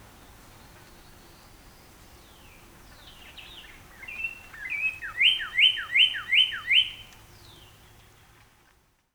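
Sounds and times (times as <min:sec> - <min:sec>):
Northern Cardinal whistled song: 0:04.0 - 0:07.1.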